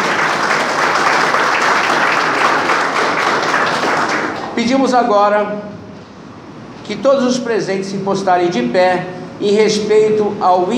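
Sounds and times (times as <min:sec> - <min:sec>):
crowd applauding: 0:00.0 - 0:04.6
speech: 0:04.6 - 0:05.8, 0:06.9 - 0:10.7.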